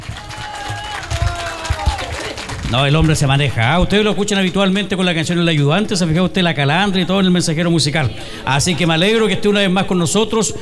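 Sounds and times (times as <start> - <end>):
audience applause: 0.0 - 3.5
speech: 2.7 - 10.6.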